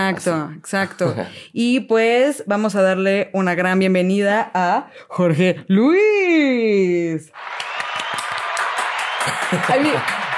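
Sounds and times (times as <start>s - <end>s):
speech: 0.0s - 7.7s, 9.2s - 10.2s
crowd applause sound effect: 7.4s - 10.3s
laughter: 9.1s - 10.3s.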